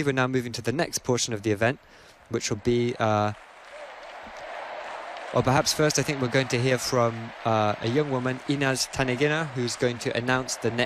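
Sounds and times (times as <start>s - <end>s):
speech: 0.0s - 3.5s, 5.3s - 10.8s
stadium crowd applause: 2.2s - 10.8s.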